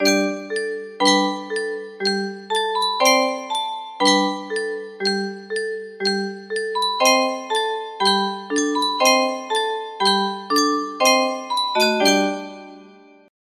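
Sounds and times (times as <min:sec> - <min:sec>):
music box: 0:00.0 - 0:13.3.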